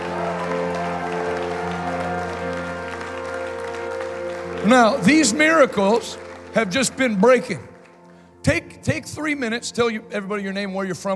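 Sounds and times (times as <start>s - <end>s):
audience clapping: 0.0s - 8.5s
sustained musical tones: 0.0s - 10.6s
speech: 4.6s - 7.7s, 8.4s - 11.1s.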